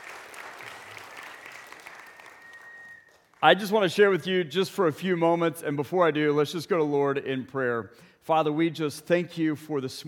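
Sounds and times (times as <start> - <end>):
audience round of applause: 0.0 - 3.6
thin high whistle-like tone: 1.9 - 3.2
speech: 3.4 - 10.0.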